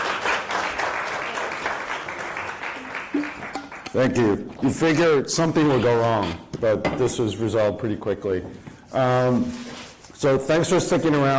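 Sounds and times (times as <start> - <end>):
round of applause: 0.0 - 4.2
speech: 3.1 - 9.6, 10.2 - 11.3.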